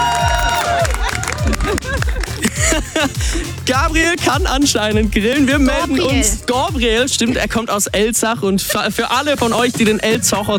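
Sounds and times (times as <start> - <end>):
applause at a garden party: 0.0 - 2.7
laughter: 0.0 - 9.6
speech: 3.7 - 10.5.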